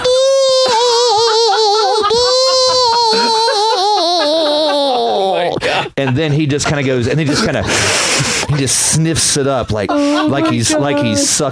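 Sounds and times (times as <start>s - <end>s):
voice imitating a little shriek: 0.0s - 5.5s
laughter: 0.0s - 11.4s
speech: 6.0s - 11.4s.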